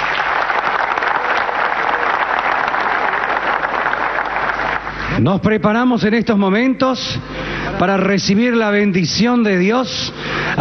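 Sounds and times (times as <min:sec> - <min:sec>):
loud applause: 0:00.0 - 0:05.1
speech: 0:05.2 - 0:10.5.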